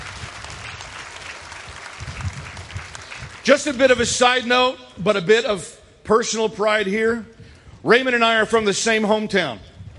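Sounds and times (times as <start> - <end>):
audience applause: 0.0 - 3.9
speech: 3.4 - 9.7.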